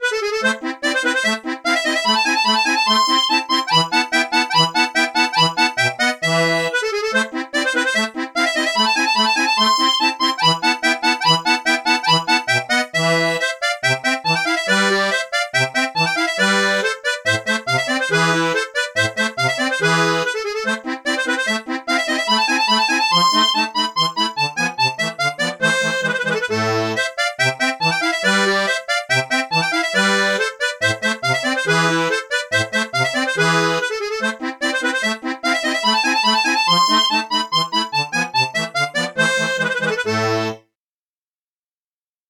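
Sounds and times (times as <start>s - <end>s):
bandoneon: 0.0s - 40.6s.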